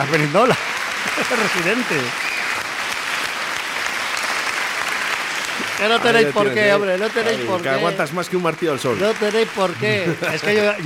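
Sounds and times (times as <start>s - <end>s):
laughter: 0.0s - 2.1s, 5.6s - 8.0s, 9.5s - 10.8s
speech: 0.0s - 2.2s, 5.8s - 10.8s
audience applause: 0.0s - 10.8s.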